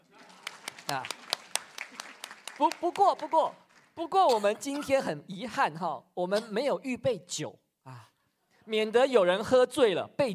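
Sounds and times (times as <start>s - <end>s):
audience applause: 0.0s - 4.0s
speech: 0.9s - 1.2s, 2.6s - 8.1s, 8.7s - 10.3s.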